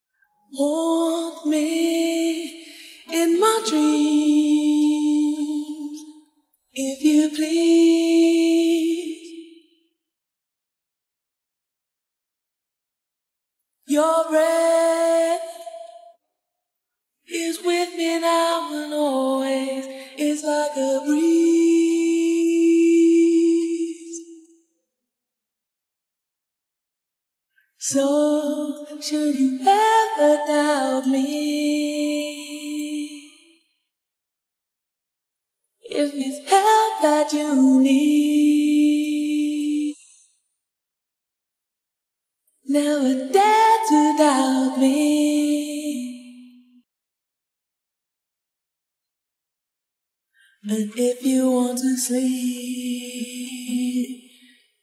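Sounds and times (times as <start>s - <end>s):
a cappella singing: 0.5s - 9.7s, 13.9s - 16.2s, 17.3s - 24.6s, 27.8s - 33.6s, 35.8s - 40.3s, 42.6s - 46.8s, 50.6s - 54.6s.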